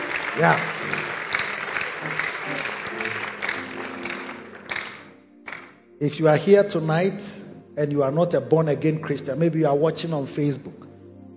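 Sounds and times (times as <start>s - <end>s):
crowd clapping: 0.0s - 5.8s
speech: 0.4s - 1.0s, 6.0s - 10.8s.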